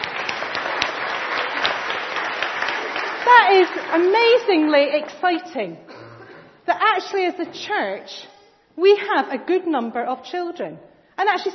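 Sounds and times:
round of applause: 0:00.0 - 0:04.7
speech: 0:03.5 - 0:05.9, 0:06.7 - 0:11.5.

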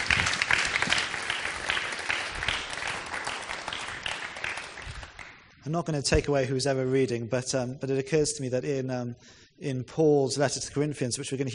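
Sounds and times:
audience applause: 0:00.0 - 0:05.4
speech: 0:05.7 - 0:11.5.

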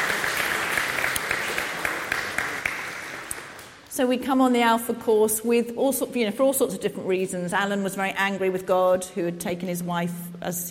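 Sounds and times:
audience clapping: 0:00.0 - 0:03.9
speech: 0:04.0 - 0:10.6.

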